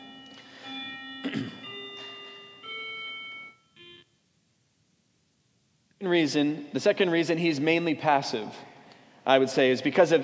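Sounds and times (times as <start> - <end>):
bell ringing: 0.0 - 4.1
speech: 1.2 - 1.6, 6.0 - 8.7, 9.3 - 10.2.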